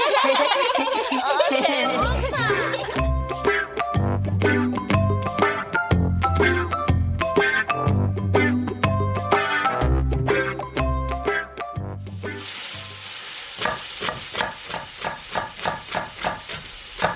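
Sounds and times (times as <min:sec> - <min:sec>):
laughter: 0:00.0 - 0:03.2
music: 0:00.8 - 0:17.1
kimchi fried rice sizzling in a pan: 0:12.0 - 0:17.1.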